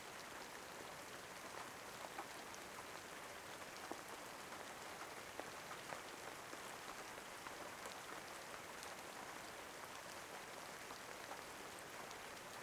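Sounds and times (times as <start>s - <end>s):
rain: 0.0s - 12.6s.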